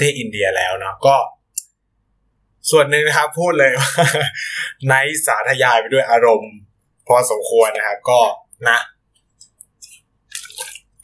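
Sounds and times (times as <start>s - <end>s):
speech: 0.0s - 1.4s, 2.6s - 8.9s
sipping and slurping water: 9.4s - 11.0s.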